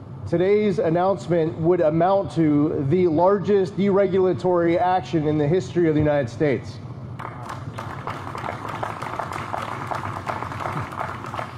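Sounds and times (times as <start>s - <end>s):
speech: 0.3s - 6.8s
tepid crowd applause: 7.2s - 11.5s.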